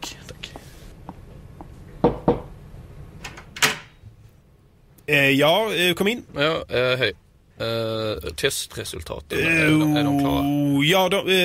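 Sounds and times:
knocking on a door: 0:02.0 - 0:02.5
speech: 0:05.1 - 0:11.4.

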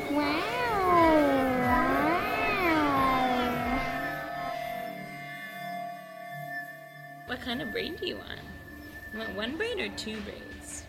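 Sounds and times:
child vocally imitating a UFO sound: 0:00.1 - 0:04.1
speech: 0:07.4 - 0:08.5, 0:09.1 - 0:10.6.

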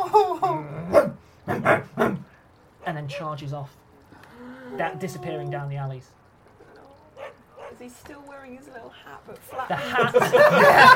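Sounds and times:
dog barking harshly: 0:00.9 - 0:02.3, 0:07.2 - 0:07.8, 0:09.5 - 0:09.8
speech: 0:03.1 - 0:03.8, 0:04.4 - 0:06.2, 0:07.8 - 0:10.9
dog whining: 0:04.7 - 0:05.6
laughter: 0:09.5 - 0:10.9.

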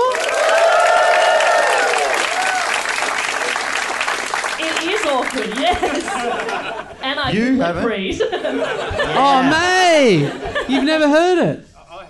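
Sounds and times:
audience applause: 0:00.0 - 0:06.8
speech: 0:05.3 - 0:11.7
laughter: 0:05.4 - 0:07.0, 0:08.1 - 0:12.0.

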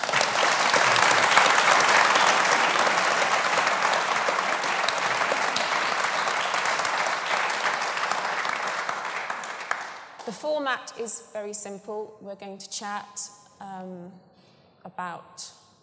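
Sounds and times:
audience applause welcoming the panel at a football talk event: 0:00.0 - 0:10.2
speech: 0:10.3 - 0:15.6.

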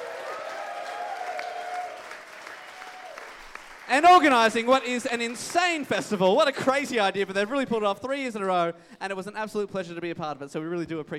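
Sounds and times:
audience applauding: 0:00.0 - 0:07.4
speech: 0:03.9 - 0:11.1.

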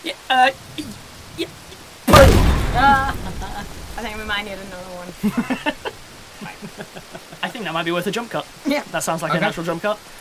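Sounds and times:
speech: 0:00.0 - 0:00.8, 0:04.0 - 0:05.9, 0:07.6 - 0:10.1
demonstration shot blast fired from the defences in a tabletop role-play game: 0:02.1 - 0:05.2.

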